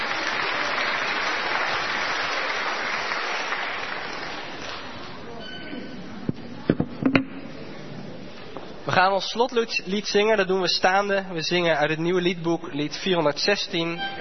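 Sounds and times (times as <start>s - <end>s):
crowd applauding: 0.0s - 5.0s
speech: 9.0s - 14.1s.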